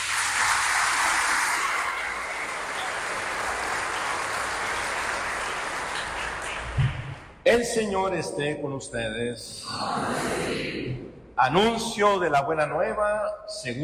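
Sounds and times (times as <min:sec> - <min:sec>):
audience applause in church: 0:00.0 - 0:07.4
brief thump: 0:06.8 - 0:07.2
speech: 0:07.5 - 0:13.8.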